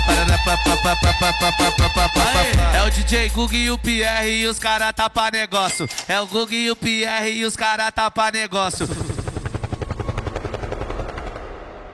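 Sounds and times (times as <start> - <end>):
speech: 0.3 - 9.1
helicopter rotor sound effect: 8.7 - 11.9.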